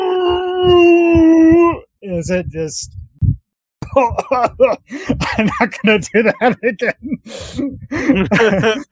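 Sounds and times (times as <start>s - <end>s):
voice imitating a terrible inhuman scream: 0.0s - 1.8s
speech: 0.7s - 1.1s, 2.0s - 3.0s, 4.0s - 8.8s
laughter: 7.9s - 8.8s.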